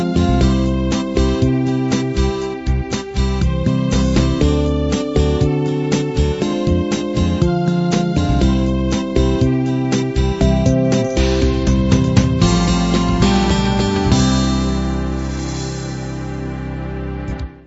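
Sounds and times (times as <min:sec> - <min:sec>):
standard combined 8 beat rhythm: 0:00.0 - 0:16.6.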